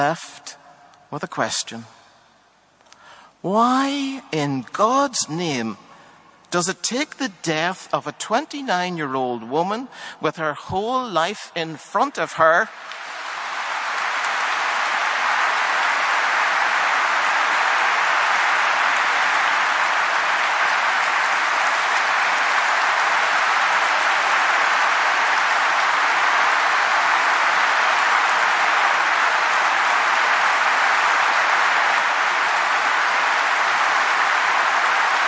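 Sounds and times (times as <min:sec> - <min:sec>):
speech: 0:00.0 - 0:00.4, 0:01.1 - 0:02.0, 0:03.4 - 0:05.9, 0:06.5 - 0:13.0
audience and politicians standing and clapping: 0:12.7 - 0:35.2.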